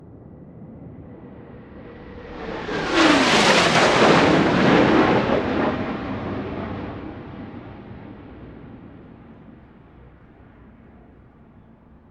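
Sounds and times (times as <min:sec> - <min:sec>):
jet passing: 0:01.5 - 0:08.3.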